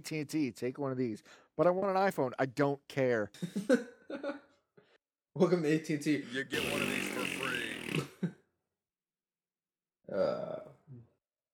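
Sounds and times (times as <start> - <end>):
speech: 0.0 - 4.4, 5.4 - 7.0
mouth raspberry imitating a fart: 6.2 - 8.2.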